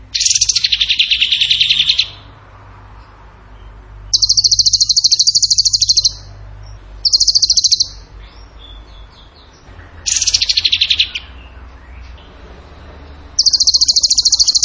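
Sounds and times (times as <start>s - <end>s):
bird trilling: 0.0s - 2.3s, 4.1s - 12.0s, 13.3s - 14.6s.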